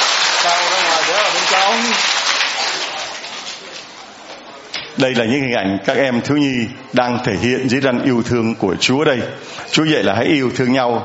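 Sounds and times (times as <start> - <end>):
crowd clapping: 0.0 - 4.0
speech: 5.0 - 11.0.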